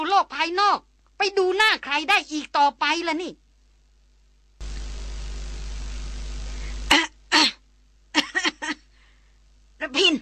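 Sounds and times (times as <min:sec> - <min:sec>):
speech: 0:00.2 - 0:03.4, 0:09.8 - 0:10.2
hissing radio static: 0:04.6 - 0:07.0
harsh coughing and choking over a radio: 0:06.9 - 0:08.9.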